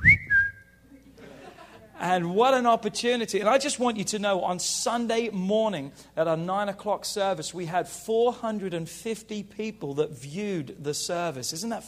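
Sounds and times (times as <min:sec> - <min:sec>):
person whistling imitation of a phone notification alert: 0:00.0 - 0:00.8
laughter: 0:00.9 - 0:02.1
speech: 0:02.0 - 0:11.8.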